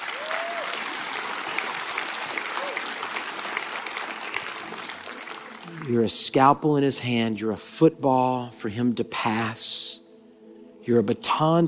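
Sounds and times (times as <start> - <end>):
audience cheering and applauding: 0.0 - 6.2
speech: 5.8 - 10.0, 10.9 - 11.6.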